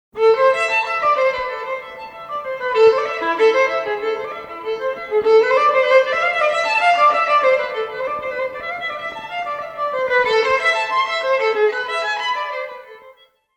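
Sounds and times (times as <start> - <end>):
solo violin sonata: 0.2 - 13.5.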